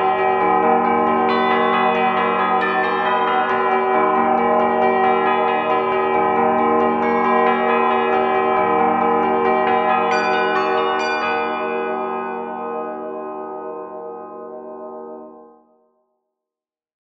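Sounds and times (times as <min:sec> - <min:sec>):
bells in 12th root phi microtonal tuning: 0:00.0 - 0:15.3.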